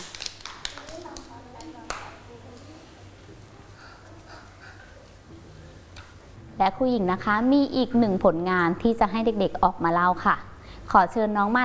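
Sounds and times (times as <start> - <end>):
children clapping: 0.0 - 2.2
speech: 6.6 - 11.6.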